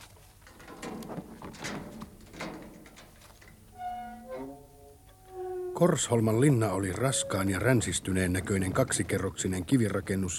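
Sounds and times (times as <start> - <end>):
castle gate being opened: 0.4 - 8.3
castle gate creaking: 0.4 - 9.3
speech: 5.8 - 10.3.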